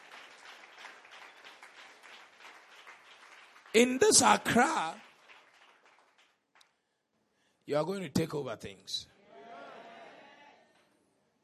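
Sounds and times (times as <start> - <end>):
audience clapping in praise: 0.0 - 6.8
speech: 3.8 - 5.0, 7.7 - 9.1.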